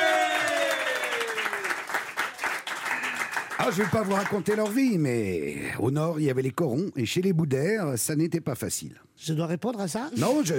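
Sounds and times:
audience applause: 0:00.0 - 0:04.9
speech: 0:03.6 - 0:10.5.

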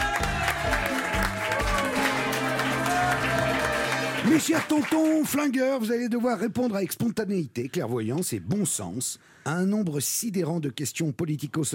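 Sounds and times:
enthusiastic audience applause: 0:00.0 - 0:05.6
speech: 0:04.2 - 0:11.7.

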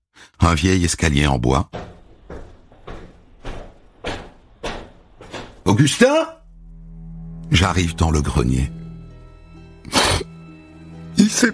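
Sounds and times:
speech: 0:00.5 - 0:01.8, 0:05.7 - 0:06.4, 0:07.6 - 0:08.8, 0:11.4 - 0:11.5
door opening: 0:01.7 - 0:06.2.

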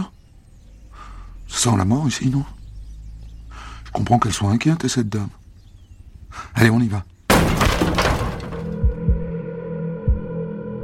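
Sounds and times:
speech: 0:01.6 - 0:02.6, 0:04.0 - 0:05.4, 0:06.6 - 0:07.1
door being forced open by firefighters: 0:07.3 - 0:08.9
heavy low thuds: 0:07.3 - 0:09.4.

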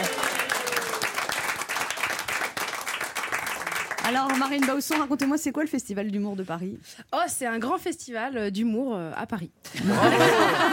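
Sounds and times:
studio audience applause: 0:00.0 - 0:05.4
speech: 0:04.1 - 0:10.7
laughter: 0:09.7 - 0:10.7.

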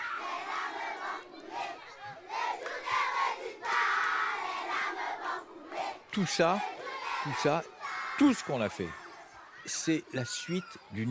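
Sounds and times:
children at a school singing a song together: 0:00.0 - 0:08.2
children shouting: 0:00.0 - 0:11.0
speech: 0:06.1 - 0:09.0, 0:09.6 - 0:11.0.

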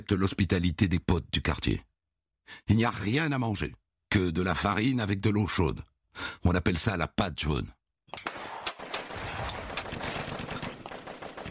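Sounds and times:
speech: 0:00.0 - 0:01.9, 0:02.5 - 0:08.3
automatic weapons gunfire cracks in a war zone: 0:08.2 - 0:11.4.

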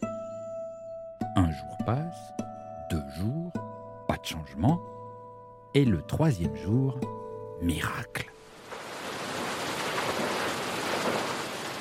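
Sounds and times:
speech: 0:01.4 - 0:05.0, 0:05.7 - 0:08.4
rushing waterfall: 0:08.4 - 0:11.7.

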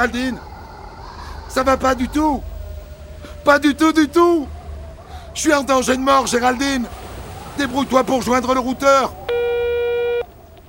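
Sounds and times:
speech: 0:00.0 - 0:00.5, 0:01.5 - 0:02.5, 0:03.4 - 0:04.6, 0:05.4 - 0:07.0, 0:07.6 - 0:09.2
faint hiss: 0:00.0 - 0:10.6
phone line busy signal: 0:09.3 - 0:10.3.

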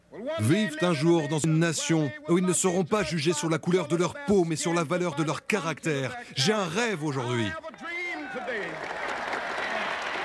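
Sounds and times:
speech: 0:00.2 - 0:07.7
raised voices cheering: 0:07.8 - 0:10.2
crowd applauding a speech: 0:08.0 - 0:10.2.

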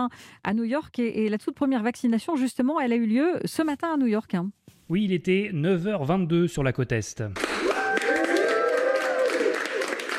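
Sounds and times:
speech: 0:00.0 - 0:07.7
applause for first vaccination: 0:07.4 - 0:10.1
voices calling or cheering: 0:07.6 - 0:10.1.

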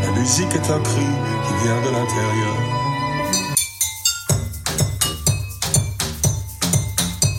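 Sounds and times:
speech: 0:00.2 - 0:03.5
glasses and a basin played as percussion: 0:03.2 - 0:07.3.

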